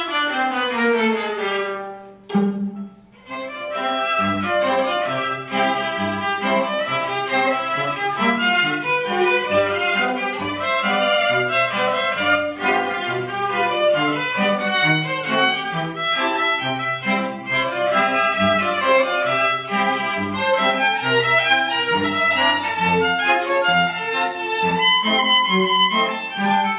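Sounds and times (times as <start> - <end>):
ragtime music: 0.1 - 26.7.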